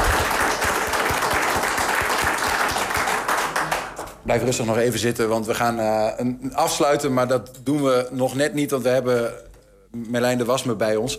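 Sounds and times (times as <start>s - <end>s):
audience applause: 0.0s - 4.2s
speech: 4.3s - 11.1s.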